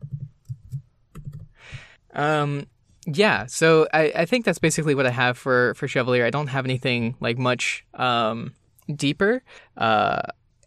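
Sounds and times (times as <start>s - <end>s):
typing on a computer keyboard into Google Docs: 0.0s - 1.6s
speech: 1.6s - 10.6s.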